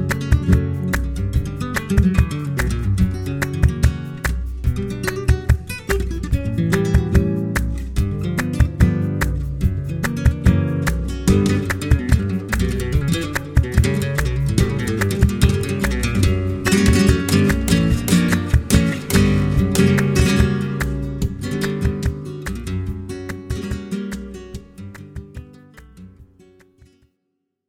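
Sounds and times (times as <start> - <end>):
flamenco guitar playing tangos compas: 0.0 - 27.1.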